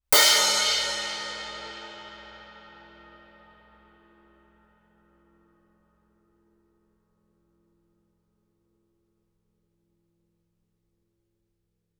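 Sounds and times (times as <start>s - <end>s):
suspended cymbal crash struck with stick fortissimo: 0.2s - 4.4s.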